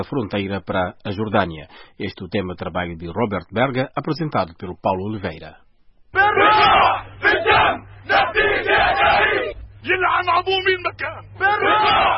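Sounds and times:
speech: 0.0 - 7.1, 9.8 - 12.1
crowd of violent protesters shouting: 6.2 - 10.0, 11.4 - 12.1.

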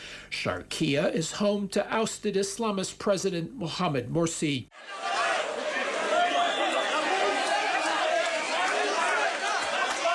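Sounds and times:
speech: 0.3 - 5.0
crowd of supporters clamoring at a polling station in a Cairo suburb: 4.8 - 10.1.

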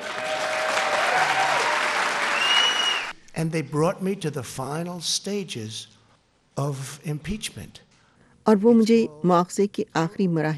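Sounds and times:
enthusiastic crowd applauding the president at the White House: 0.0 - 3.2
speech: 3.4 - 6.0, 6.6 - 7.9, 8.5 - 10.5.

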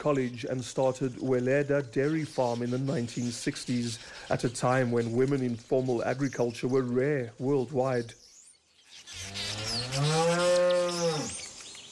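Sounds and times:
speech: 0.0 - 8.2
Jersey cow mooing: 9.4 - 11.4.

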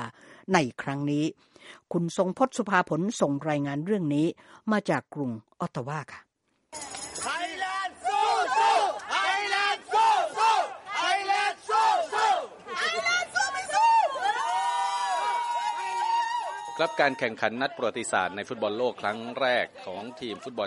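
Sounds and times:
speech: 0.5 - 7.0, 16.8 - 20.6
Thai football fans cheering: 7.3 - 17.4.

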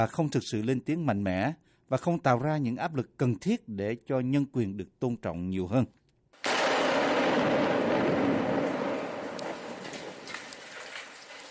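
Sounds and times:
speech: 0.0 - 6.0
barrel bombs exploding on a city's outskirts: 6.4 - 11.4.

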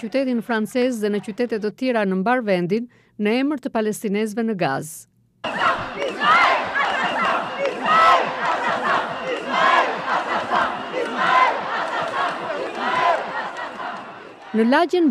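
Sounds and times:
speech: 0.0 - 6.5, 14.5 - 15.1
protest crowd chanting for Palestinians in Gaza in northern Paris: 5.4 - 14.7.

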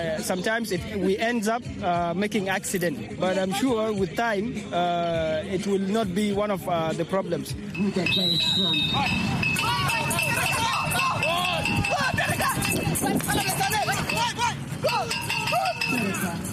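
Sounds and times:
speech: 0.0 - 9.7, 15.0 - 16.5
overlapping voices calling out: 7.5 - 16.5
blind soccer ball bells jingling: 7.6 - 16.5
patter of running feet: 7.8 - 16.5.

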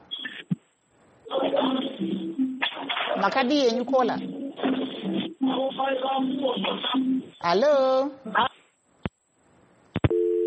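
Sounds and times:
voice fragment on a telephone line: 1.3 - 8.5
speech: 3.2 - 4.4, 5.8 - 8.5
telephone line tone after a caller's call drops: 10.1 - 10.4.

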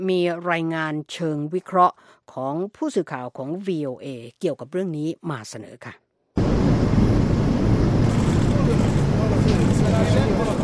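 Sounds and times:
speech: 0.0 - 6.0
airplane engine roaring: 6.4 - 10.6.

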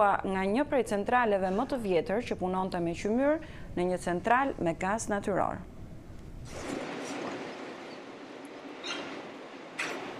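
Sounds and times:
speech: 0.0 - 5.7, 6.4 - 6.8
train passing through rural Virginia countryside: 7.0 - 10.1.

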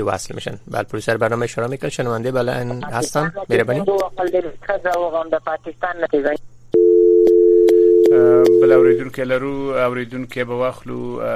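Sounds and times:
speech: 0.0 - 6.5, 8.2 - 11.3
telephone dial tone after a call is disconnected: 6.8 - 9.0.

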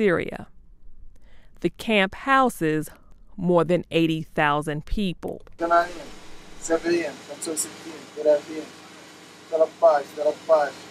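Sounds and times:
speech: 0.0 - 0.6, 1.6 - 8.8, 9.5 - 10.8
electricity generator droning at a refugee camp near Jordan's border with Syria: 5.6 - 10.8.

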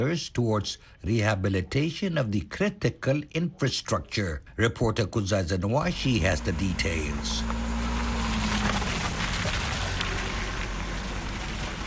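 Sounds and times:
speech: 0.0 - 7.7
vehicles driving slowly over potholes on an urban road in Zimbabwe: 5.8 - 11.8.

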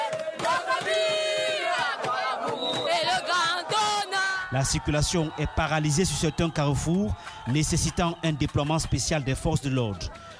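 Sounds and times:
crowd singing national anthem in streets: 0.0 - 4.6
crowd shouting: 0.0 - 10.3
speech: 4.5 - 10.3.

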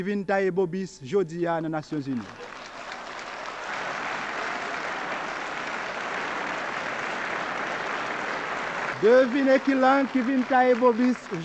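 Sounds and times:
speech: 0.0 - 2.6, 9.0 - 11.4
applause: 2.0 - 11.4.

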